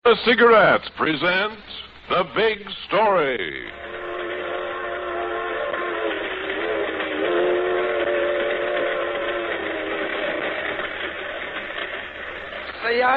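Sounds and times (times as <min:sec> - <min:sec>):
speech: 0:00.1 - 0:04.0, 0:12.8 - 0:13.1
freight train rumbling: 0:00.3 - 0:13.1
steam whistle blast: 0:03.7 - 0:10.9.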